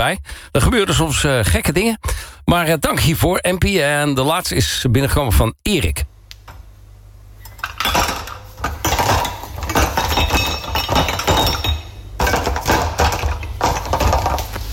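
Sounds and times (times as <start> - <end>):
speech: 0.0 - 6.1
dishes and cutlery clinking while loading a dishwasher: 7.4 - 14.7.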